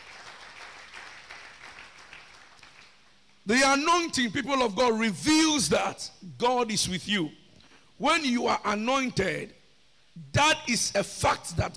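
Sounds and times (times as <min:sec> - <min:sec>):
audience clapping hands: 0:00.0 - 0:03.1
speech: 0:03.4 - 0:07.4, 0:08.0 - 0:09.6, 0:10.2 - 0:11.7.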